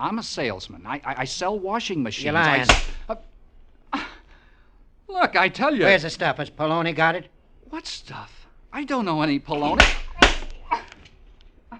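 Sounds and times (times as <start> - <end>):
speech: 0.0 - 3.3, 5.2 - 10.0
face being slapped: 2.5 - 3.2, 9.6 - 11.1.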